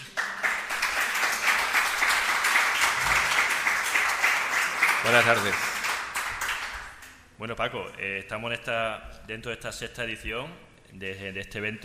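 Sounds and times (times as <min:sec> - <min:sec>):
applause: 0:00.0 - 0:07.2
speech: 0:05.0 - 0:05.7, 0:07.4 - 0:11.8.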